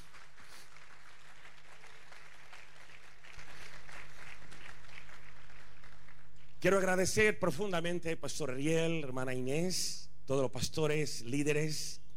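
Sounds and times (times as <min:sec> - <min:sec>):
audience applause: 0:00.0 - 0:06.3
speech: 0:06.6 - 0:12.0.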